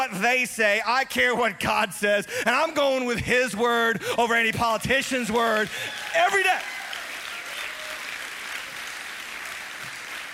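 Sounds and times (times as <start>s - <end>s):
speech: 0.0s - 6.8s
audience applause: 5.4s - 10.3s.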